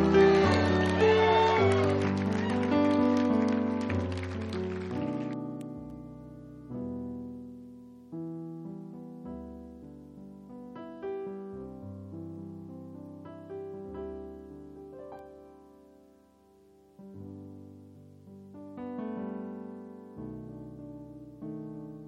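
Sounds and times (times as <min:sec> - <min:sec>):
audience clapping and hollering: 0:00.0 - 0:05.4.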